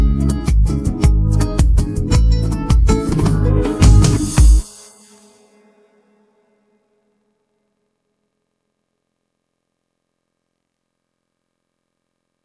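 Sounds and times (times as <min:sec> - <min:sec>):
instrumental music: 0:00.0 - 0:06.4.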